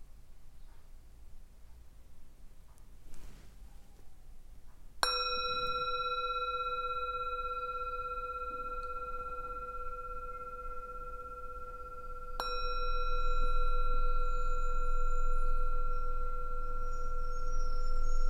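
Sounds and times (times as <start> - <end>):
meditation bell: 5.0 - 18.2.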